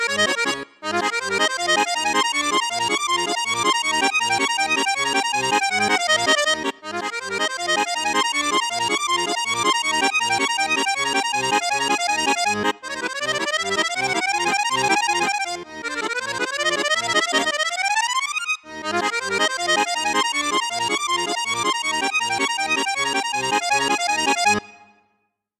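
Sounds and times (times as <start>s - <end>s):
Cavagnolo Vedette 10 accordion on two flutes and piccolo register: 0.0s - 25.1s.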